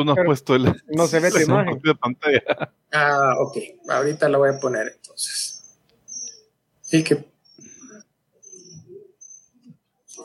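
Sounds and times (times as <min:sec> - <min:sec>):
speech: 0:00.0 - 0:05.5, 0:06.9 - 0:07.3
cricket chirping in the background of an online video call: 0:03.4 - 0:10.2.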